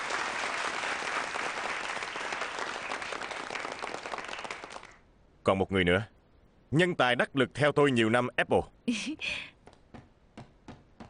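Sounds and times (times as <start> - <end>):
warm applause: 0.0 - 5.1
speech: 5.5 - 6.1, 6.7 - 9.5.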